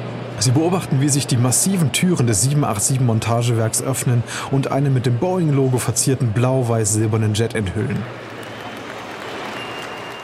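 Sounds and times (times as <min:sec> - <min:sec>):
speech: 0:00.4 - 0:08.4
crowd clapping at the sight of a jet: 0:07.8 - 0:10.2.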